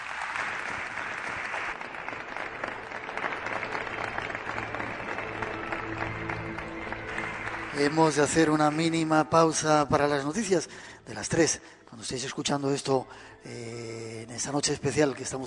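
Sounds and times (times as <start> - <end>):
audience applause: 0.0 - 9.3
speech: 7.8 - 15.4.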